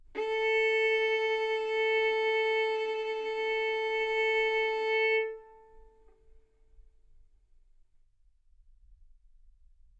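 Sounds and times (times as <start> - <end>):
violin arco on A string: 0.0 - 6.4.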